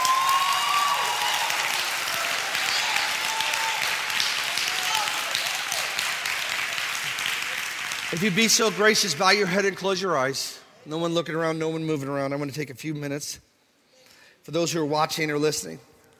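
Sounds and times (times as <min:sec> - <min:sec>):
audience clapping: 0:00.0 - 0:09.8
speech: 0:08.1 - 0:13.5, 0:14.4 - 0:15.9.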